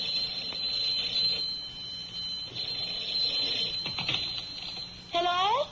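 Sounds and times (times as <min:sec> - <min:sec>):
telephone ringing: 0:00.0 - 0:05.5.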